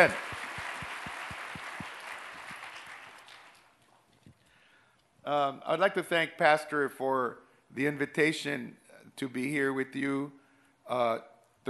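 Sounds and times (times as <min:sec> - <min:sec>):
speech: 0:00.0 - 0:00.3, 0:05.3 - 0:11.6
crowd applause: 0:00.0 - 0:03.7.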